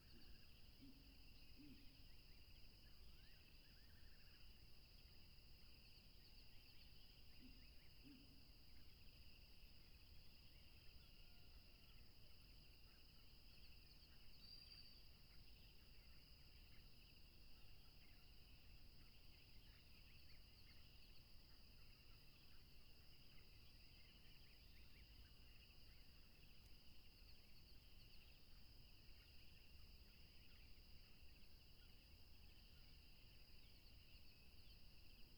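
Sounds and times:
crickets chirping in a dense chorus: 0.0s - 35.3s.

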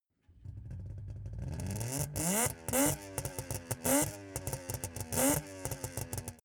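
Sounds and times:
Saab 92 car engine starting: 0.2s - 6.4s
Saab 92 exhaust blips: 0.2s - 6.4s.

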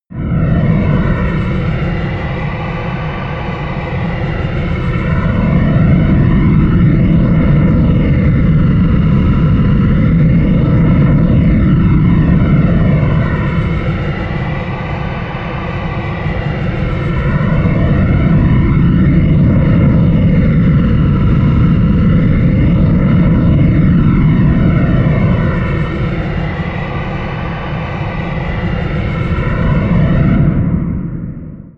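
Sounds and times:
jet stream drone: 0.1s - 31.7s.

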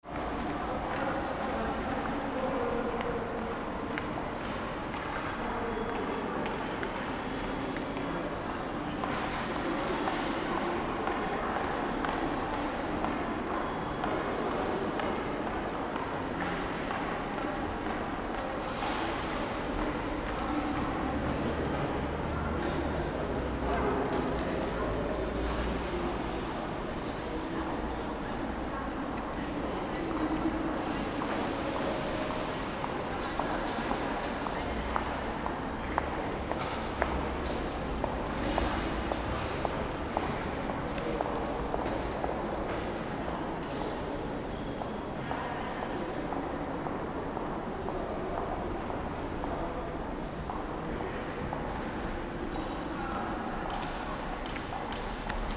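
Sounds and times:
railway station entrance hall ambience: 0.0s - 55.5s.

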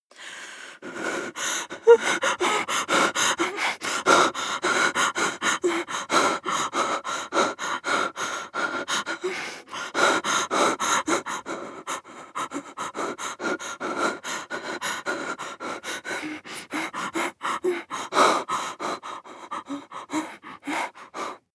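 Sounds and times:
woman breathing in fear: 0.1s - 21.5s.

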